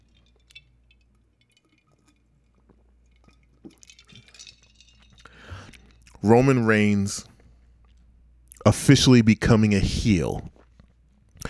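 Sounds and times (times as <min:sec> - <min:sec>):
person sipping a drink: 0:02.6 - 0:06.5, 0:10.1 - 0:11.4
speech: 0:03.7 - 0:04.0, 0:06.2 - 0:07.3, 0:08.7 - 0:10.5.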